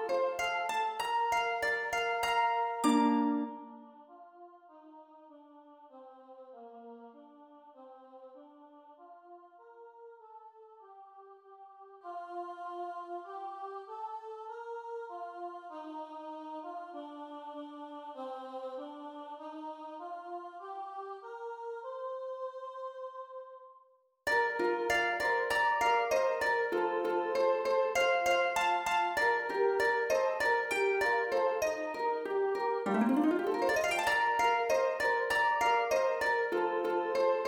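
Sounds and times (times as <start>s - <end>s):
harp: 0.0s - 4.0s, 24.3s - 37.4s.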